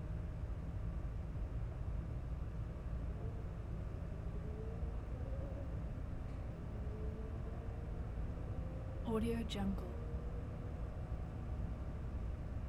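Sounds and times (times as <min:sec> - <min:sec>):
night city ambience in a block of flats area: 0:00.0 - 0:12.6.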